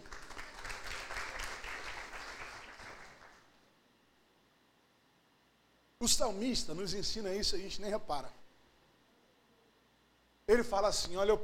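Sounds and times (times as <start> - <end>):
audience applause: 0.0 - 3.4
speech: 6.0 - 8.4, 10.5 - 11.4.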